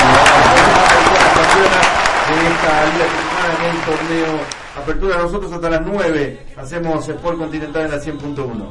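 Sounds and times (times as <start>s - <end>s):
audience applause on a sports program: 0.0s - 5.0s
speech: 2.4s - 8.6s.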